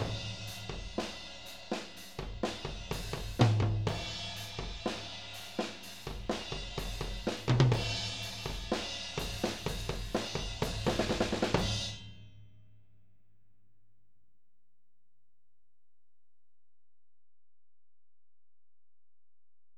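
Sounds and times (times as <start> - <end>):
tom drums in a drum mix: 0.0 - 12.2.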